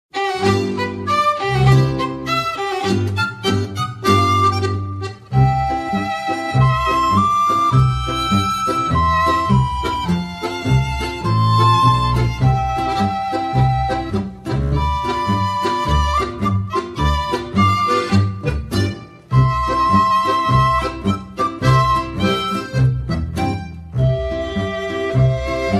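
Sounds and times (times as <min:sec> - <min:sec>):
polka music: 0:00.1 - 0:25.7.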